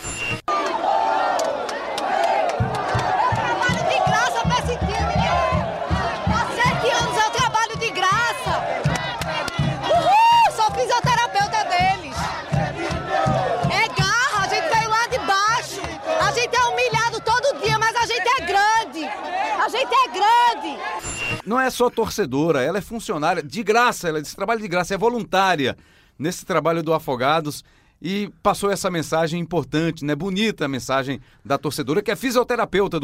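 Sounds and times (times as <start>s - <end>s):
stadium crowd at Vianão before a penalty shootout: 0.0s - 21.4s
speech: 21.6s - 33.0s.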